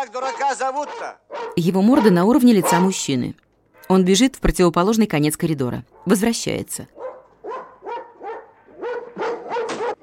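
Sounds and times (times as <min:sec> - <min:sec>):
dog barking: 0:00.0 - 0:03.0, 0:05.9 - 0:06.2, 0:06.9 - 0:10.0
speech: 0:00.0 - 0:07.0.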